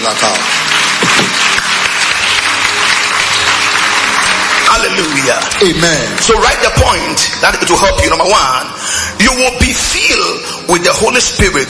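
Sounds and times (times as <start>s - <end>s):
audience clapping and applauding: 0.0s - 8.4s
speech: 0.1s - 0.6s, 5.3s - 11.6s.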